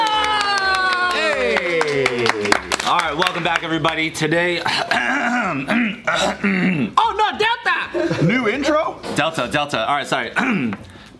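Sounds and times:
steady hand claps: 0:00.0 - 0:04.0
speech: 0:02.9 - 0:11.1.

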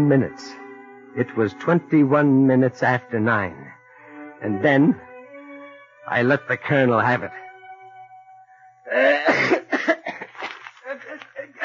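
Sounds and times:
speech: 0:00.0 - 0:03.8, 0:04.4 - 0:05.1, 0:06.1 - 0:07.4, 0:08.9 - 0:09.6
man clearing his throat: 0:08.9 - 0:10.3
man coughing fit: 0:08.9 - 0:10.4, 0:11.4 - 0:11.6
laughter: 0:09.3 - 0:11.6.

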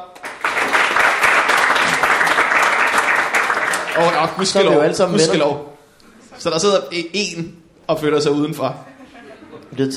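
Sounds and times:
audience clapping: 0:00.0 - 0:04.8
speech: 0:04.0 - 0:05.7, 0:06.4 - 0:08.9, 0:09.7 - 0:09.9
laughter: 0:08.8 - 0:09.8.

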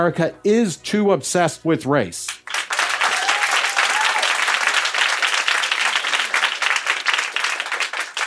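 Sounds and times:
speech: 0:00.0 - 0:02.6
crowd applause: 0:02.4 - 0:08.2.

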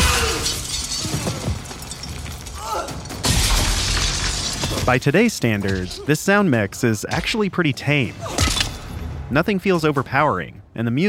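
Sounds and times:
glass shattering as people are thrown through windows in a film fight: 0:00.0 - 0:06.0, 0:08.2 - 0:09.0
speech: 0:04.9 - 0:08.4, 0:09.3 - 0:11.0.

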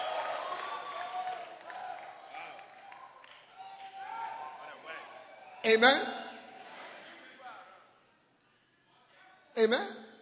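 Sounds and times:
audience clapping: 0:00.0 - 0:05.0
speech: 0:05.7 - 0:06.2, 0:09.6 - 0:10.0.

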